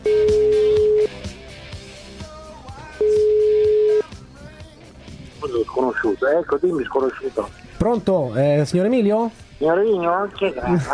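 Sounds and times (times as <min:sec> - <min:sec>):
outgoing phone call ringing tones: 0:00.0 - 0:01.2, 0:03.0 - 0:04.1
busy music: 0:00.0 - 0:10.9
speech: 0:06.2 - 0:10.9.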